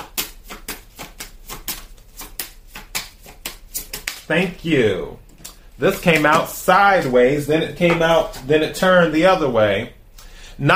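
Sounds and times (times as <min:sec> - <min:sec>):
tarot cards handled as one is drawn from the deck: 0:00.0 - 0:04.3, 0:05.3 - 0:07.1
speech: 0:04.3 - 0:05.2, 0:05.8 - 0:10.0, 0:10.6 - 0:10.7.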